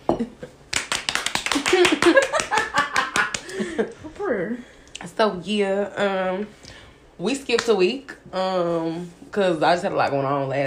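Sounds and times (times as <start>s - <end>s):
applause: 0.7s - 3.5s
laughter: 1.6s - 4.0s
speech: 1.7s - 2.4s, 3.8s - 10.6s.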